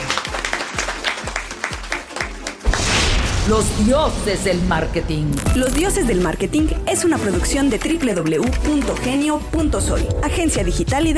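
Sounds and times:
music bed with a thumping low beat: 0.0 - 2.7, 5.5 - 11.1
applause: 0.0 - 2.8, 7.4 - 9.5
speech: 3.5 - 11.1.

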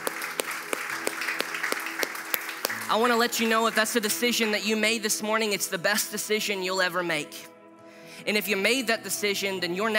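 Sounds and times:
audience clapping: 0.0 - 4.6
speech: 2.9 - 7.5, 8.2 - 9.9.

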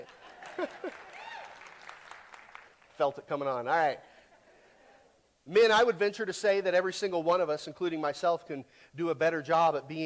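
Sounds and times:
speech: 0.0 - 1.1, 3.0 - 4.1, 5.5 - 10.0
laughter: 0.0 - 1.2
audience clapping: 0.0 - 3.2.

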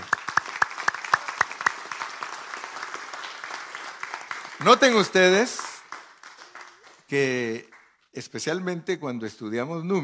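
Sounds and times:
applause: 0.0 - 8.1
speech: 4.6 - 5.6, 7.1 - 10.0.

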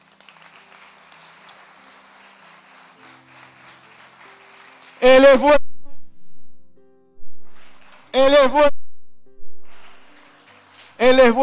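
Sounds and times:
audience applause: 0.0 - 5.5, 7.5 - 8.5, 9.7 - 11.4
speech: 5.0 - 5.6, 8.4 - 8.7.

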